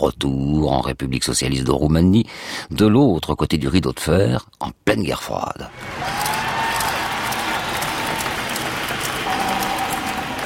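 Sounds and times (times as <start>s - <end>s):
speech: 0.0s - 6.2s
large crowd at an airport clapping and cheering: 5.7s - 10.4s.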